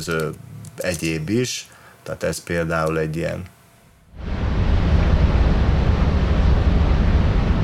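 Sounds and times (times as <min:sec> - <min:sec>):
speech: 0:00.0 - 0:03.6
deep rumbling industrial drone: 0:04.0 - 0:07.6.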